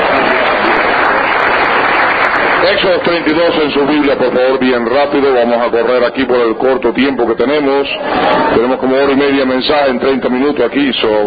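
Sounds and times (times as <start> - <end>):
congregation members applauding at a church service: 0.0 - 5.4
speech: 2.7 - 11.2.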